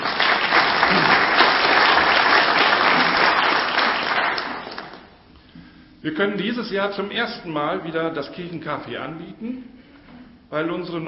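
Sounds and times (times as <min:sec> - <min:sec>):
applause: 0:00.0 - 0:05.2
speech: 0:06.0 - 0:09.8, 0:10.5 - 0:11.0.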